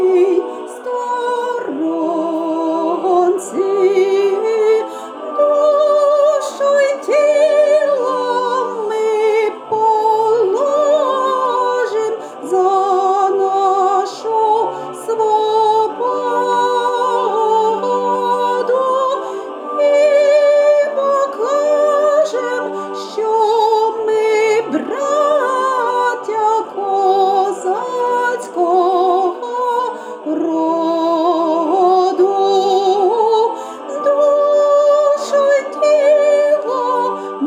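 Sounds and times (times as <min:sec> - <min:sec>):
soprano singing a national anthem: 0:00.0 - 0:37.4.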